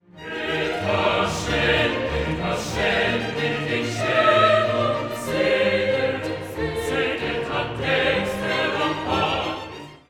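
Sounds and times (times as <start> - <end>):
choral mass movement: 0.1 - 9.9.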